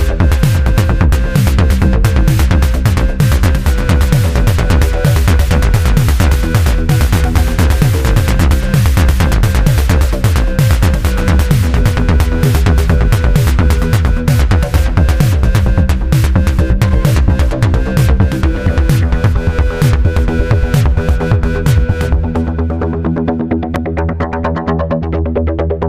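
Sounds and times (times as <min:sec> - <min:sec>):
bass: 0:00.0 - 0:25.8
drums: 0:00.0 - 0:25.8.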